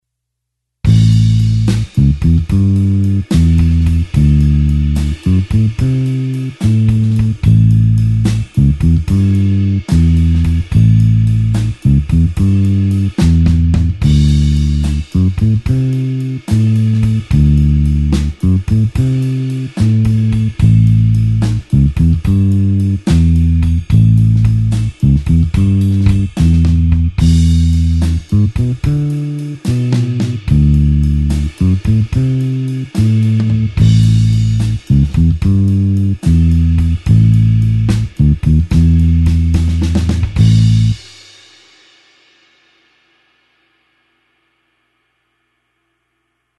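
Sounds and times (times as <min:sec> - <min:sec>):
slow blues bassline in A: 0:00.9 - 0:41.1.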